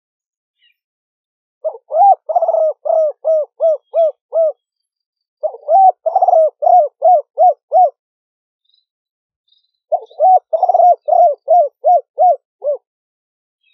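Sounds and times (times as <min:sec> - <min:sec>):
spotted dove cooing: 0:01.6 - 0:04.6, 0:05.4 - 0:08.0, 0:09.9 - 0:12.9.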